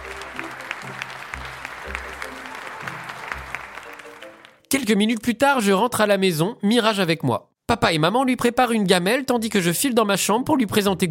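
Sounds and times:
applause from a crowd of passersby: 0.0s - 4.7s
speech: 4.8s - 11.0s.

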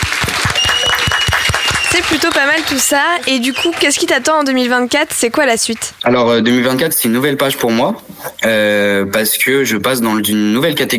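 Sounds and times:
audience applause: 0.0s - 4.6s
speech: 2.0s - 10.9s.

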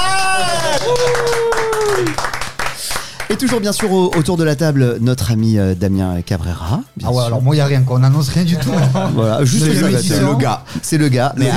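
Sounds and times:
audience applause for a guest: 0.0s - 4.3s
speech: 3.3s - 11.5s
laughter: 8.4s - 10.4s.

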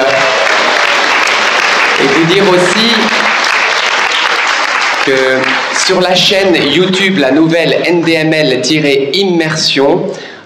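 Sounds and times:
crowd applauding: 0.0s - 7.2s
speech: 2.0s - 3.2s, 5.0s - 10.3s.

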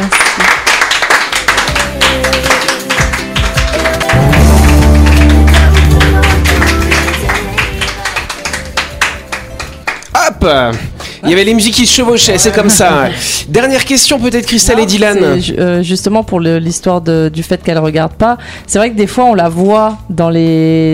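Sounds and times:
audience applause: 0.0s - 10.0s
speech: 10.4s - 20.9s.

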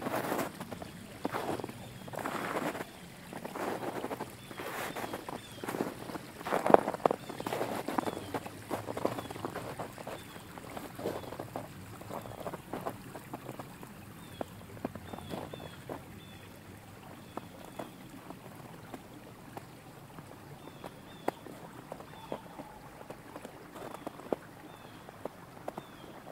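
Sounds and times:
boots crunching through snow in Pennsylvania woodlands: 0.0s - 13.6s, 14.8s - 16.0s, 21.9s - 24.4s
creek flowing: 0.0s - 26.3s.

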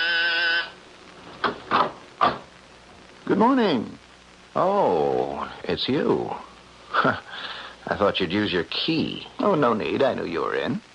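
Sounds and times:
door buzzer sounding: 0.0s - 0.8s
speech: 3.3s - 10.9s.

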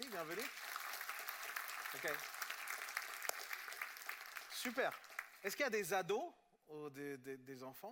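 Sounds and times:
audience applause: 0.0s - 5.6s
speech: 0.2s - 0.7s, 1.9s - 2.4s, 4.6s - 7.9s.

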